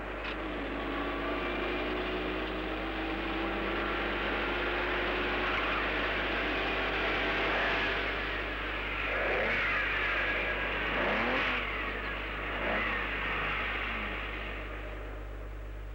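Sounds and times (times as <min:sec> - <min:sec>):
car engine revving and accelerating past at about 200 km per hour: 0:00.1 - 0:15.8.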